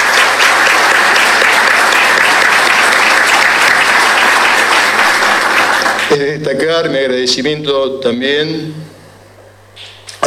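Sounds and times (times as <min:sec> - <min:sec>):
audience applause: 0:00.0 - 0:06.2
speech: 0:06.4 - 0:08.8.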